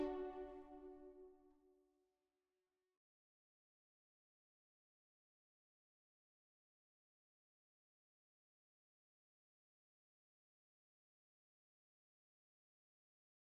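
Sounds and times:
low strings melody loop in B minor: 0.0s - 1.2s.

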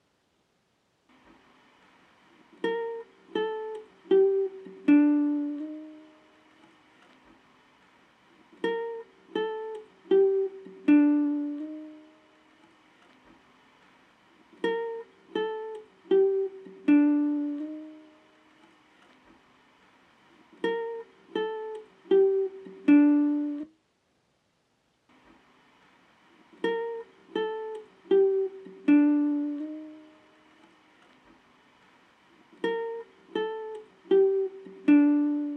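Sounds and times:
guitar loop in G minor at 80 BPM: 2.3s - 7.0s, 8.2s - 12.8s, 14.2s - 19.0s, 20.1s - 23.7s, 26.3s - 31.1s, 31.8s - 35.5s.

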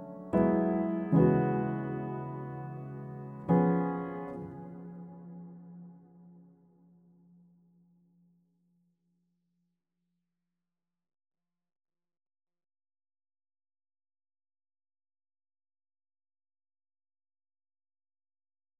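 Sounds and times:
piano loop in D sharp minor: 0.0s - 5.6s.

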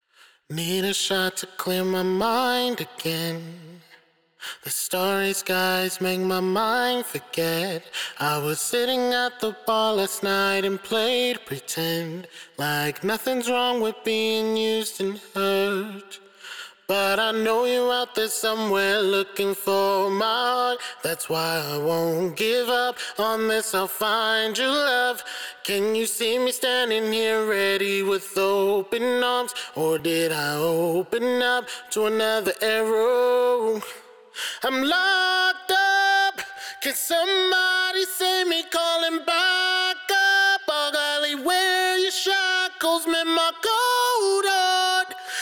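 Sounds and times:
wet a cappella main vocal in G major: 0.0s - 45.4s.

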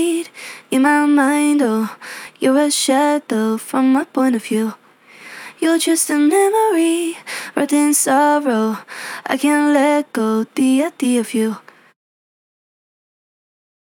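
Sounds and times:
dry a cappella lead vocal in A minor: 0.0s - 4.8s, 5.5s - 11.8s.

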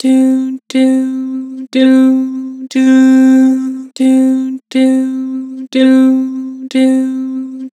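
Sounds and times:
person singing doo: 0.0s - 7.7s.

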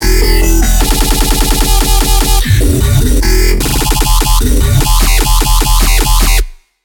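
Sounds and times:
dubstep bass loop: 0.0s - 6.6s.

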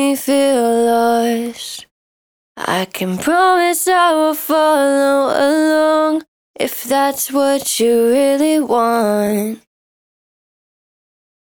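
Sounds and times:
dry main vocal acapella in D sharp minor: 0.0s - 1.9s, 2.6s - 9.6s.

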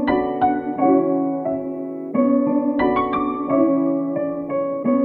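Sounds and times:
melody in B minor: 0.1s - 1.9s, 2.8s - 4.9s.

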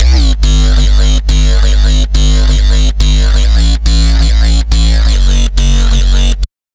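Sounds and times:
dubstep bassline in C3 at 140 bpm: 0.0s - 6.5s.

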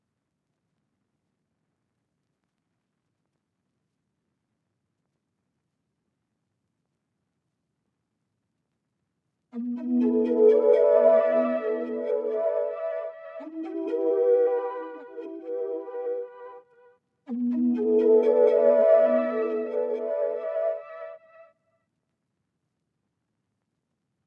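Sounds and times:
counter melody in E minor: 9.6s - 16.6s, 17.3s - 21.2s.

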